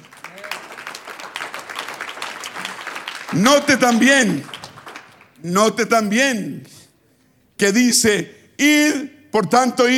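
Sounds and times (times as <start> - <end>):
audience applause: 0.0 - 5.3
speech: 3.3 - 4.5, 5.4 - 6.7, 7.6 - 9.9.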